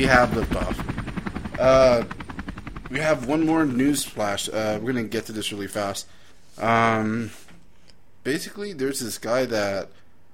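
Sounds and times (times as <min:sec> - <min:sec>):
speech: 0:00.0 - 0:00.9, 0:01.6 - 0:02.2, 0:02.9 - 0:07.4, 0:08.2 - 0:10.0
man imitating a helicopter: 0:00.0 - 0:06.0.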